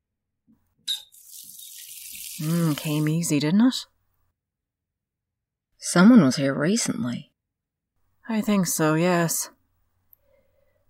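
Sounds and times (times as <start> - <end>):
sink tap turned on squeak: 0.8 - 1.1
water gushing from a sink tap: 1.0 - 3.3
speech: 2.4 - 4.0, 5.9 - 7.3, 8.3 - 9.6.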